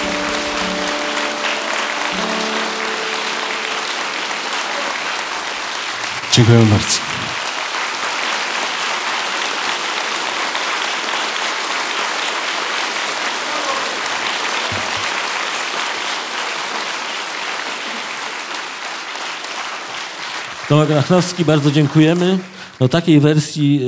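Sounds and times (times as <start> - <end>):
large audience applause at a live concert: 0.0 - 22.8
speech: 6.4 - 7.0, 20.7 - 23.8.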